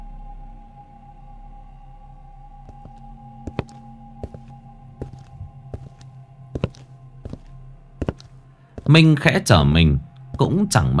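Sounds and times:
clomping footsteps on a boat deck: 2.7s - 9.0s
speech: 8.9s - 10.9s.

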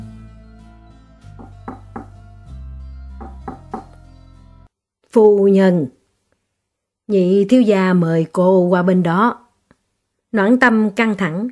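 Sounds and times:
knocking on a room door: 1.3s - 2.2s, 3.2s - 4.0s
speech: 5.2s - 6.0s, 7.1s - 9.4s, 10.3s - 11.5s.

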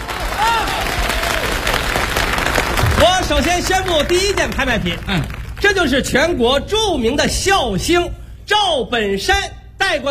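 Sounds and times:
audience applause at the 1993 Spring Festival Gala: 0.0s - 6.0s
speech: 3.0s - 10.1s.

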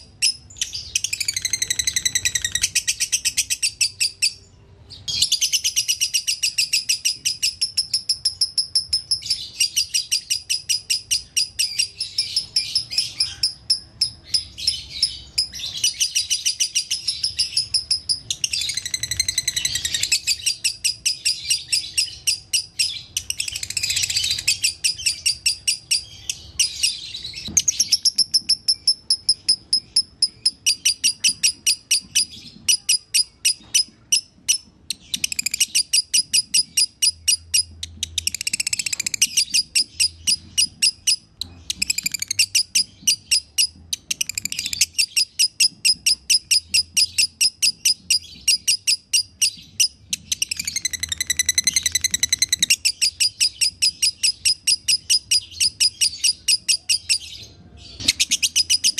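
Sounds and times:
lovebird chattering song: 0.0s - 58.9s.

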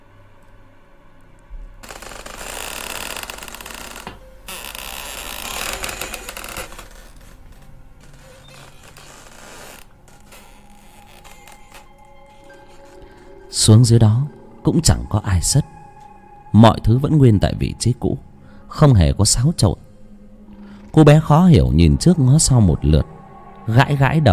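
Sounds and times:
door creaking open: 1.8s - 15.0s, 20.5s - 21.4s
speech: 13.6s - 15.7s, 16.5s - 19.8s, 21.0s - 24.3s.

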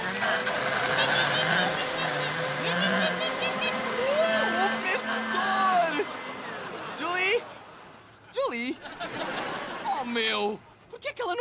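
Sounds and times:
voice imitating a motocross motorcycle engine: 0.0s - 7.4s
laughter: 0.4s - 10.6s.

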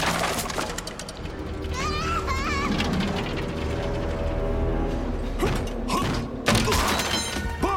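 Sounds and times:
creaking door opening: 0.2s - 7.6s.

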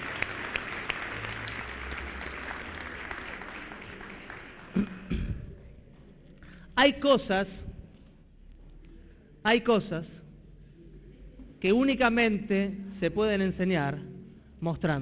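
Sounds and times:
audience applause: 0.0s - 5.1s
speech: 6.8s - 7.6s, 9.5s - 10.2s, 11.6s - 15.0s.

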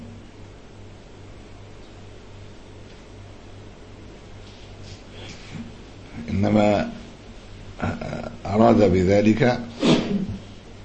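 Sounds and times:
speech: 6.4s - 7.0s, 8.5s - 10.4s
person sneezing: 9.8s - 10.4s.

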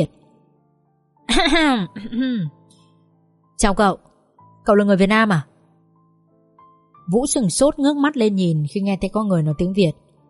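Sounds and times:
speech: 0.0s - 0.2s, 1.3s - 2.6s, 3.6s - 4.1s, 4.7s - 5.5s, 7.1s - 10.2s
person clearing throat: 1.3s - 2.6s.

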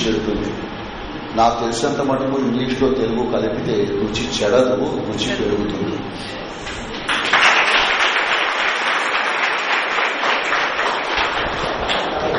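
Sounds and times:
speech: 0.0s - 6.8s
audience applause at an MBA college morning session: 7.1s - 12.3s.

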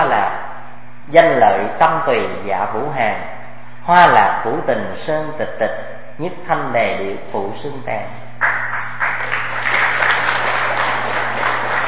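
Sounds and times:
speech: 1.1s - 8.6s
audience applause at a Buddhist lecture: 8.4s - 11.8s.

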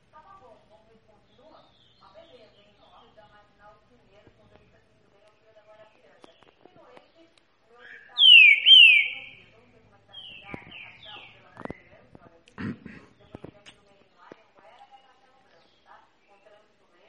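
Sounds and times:
green-winged saltator song of slurred whistles: 8.0s - 9.4s.

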